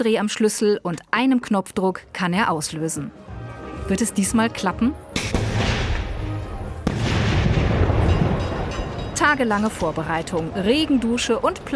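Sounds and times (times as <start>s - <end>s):
speech: 0.0s - 3.3s, 3.9s - 5.0s, 9.2s - 11.7s
fireworks launching and exploding: 5.2s - 10.6s.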